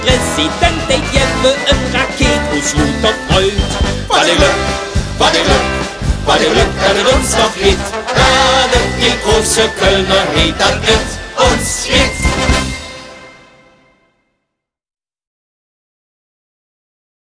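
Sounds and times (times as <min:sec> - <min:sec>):
anniversary march with singing: 0:00.0 - 0:13.5.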